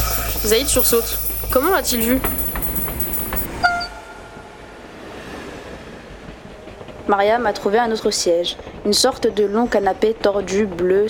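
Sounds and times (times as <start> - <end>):
high metallic whine: 0.0 - 8.0
passenger train rumbling along the rails: 0.0 - 11.0
rhythmic clacks of train on rails: 0.0 - 11.0
speech: 0.4 - 2.4, 7.1 - 11.0
short tonal whistle-like squeal: 2.7 - 4.6.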